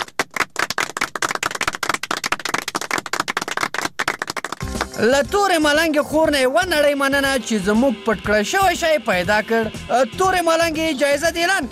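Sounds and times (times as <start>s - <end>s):
small group clapping: 0.0s - 5.1s
speech: 5.0s - 11.7s.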